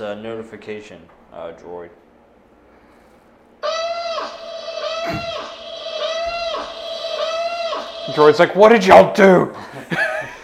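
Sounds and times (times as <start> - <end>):
speech: 0.0 - 2.0, 8.1 - 10.1
alarm going off: 3.6 - 9.2.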